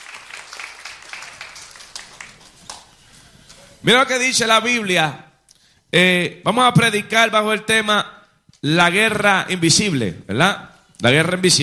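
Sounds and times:
audience applause: 0:00.0 - 0:03.1
speech: 0:03.8 - 0:05.2, 0:05.9 - 0:11.6.

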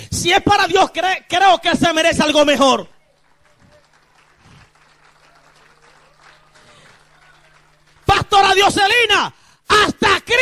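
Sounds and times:
speech: 0:00.2 - 0:02.9, 0:08.1 - 0:10.4
audience applause: 0:02.7 - 0:08.7.

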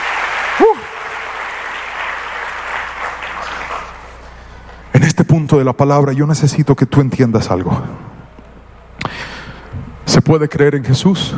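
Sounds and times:
crowd clapping for the musicians: 0:00.0 - 0:04.8
whoop or whistle: 0:00.5 - 0:01.0
speech: 0:00.6 - 0:00.8, 0:05.3 - 0:08.1, 0:10.2 - 0:11.3.

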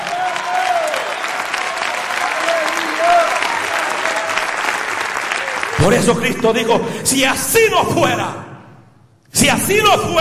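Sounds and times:
audience applauding: 0:00.0 - 0:06.6
speech: 0:05.8 - 0:08.4, 0:09.4 - 0:10.2.

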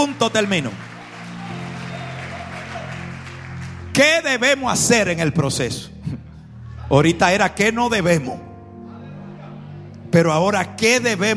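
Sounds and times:
speech: 0:00.0 - 0:00.9, 0:04.0 - 0:06.2, 0:06.9 - 0:08.5, 0:10.1 - 0:11.3
audience applauding: 0:00.0 - 0:04.9.

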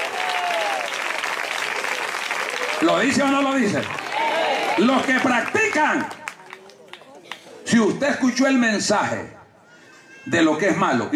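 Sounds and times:
audience applauding: 0:00.0 - 0:07.6
speech: 0:02.8 - 0:04.0, 0:04.8 - 0:06.2, 0:07.7 - 0:09.4, 0:10.2 - 0:11.1.

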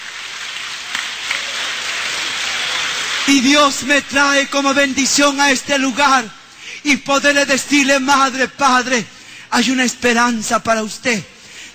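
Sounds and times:
audience applause: 0:00.0 - 0:04.5
speech: 0:03.3 - 0:11.3.

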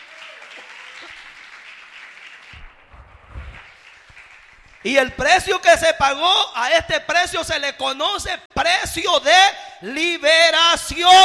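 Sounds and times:
audience clapping: 0:00.0 - 0:05.7
low thumps: 0:02.6 - 0:03.8
speech: 0:04.8 - 0:11.2.

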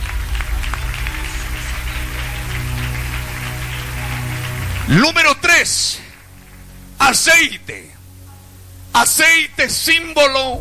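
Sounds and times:
audience clapping hands: 0:00.0 - 0:07.7
low sustained hum or held keyboard note: 0:00.0 - 0:10.5
speech: 0:04.9 - 0:06.0, 0:07.1 - 0:08.0, 0:09.0 - 0:10.5.

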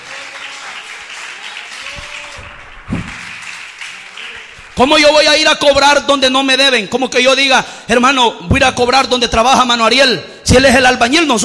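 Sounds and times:
audience applauding: 0:00.0 - 0:05.5
speech: 0:04.8 - 0:11.4.

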